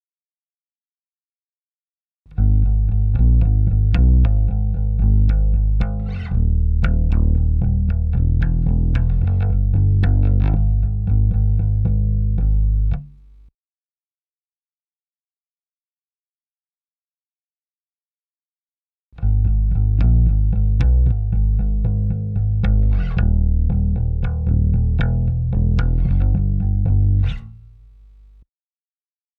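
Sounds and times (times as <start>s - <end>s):
bass: 2.3s - 13.5s, 19.2s - 28.4s.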